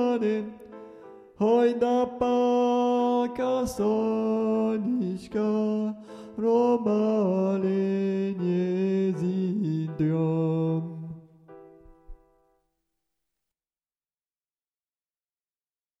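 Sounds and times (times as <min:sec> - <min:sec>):
soprano singing: 0:00.0 - 0:11.3.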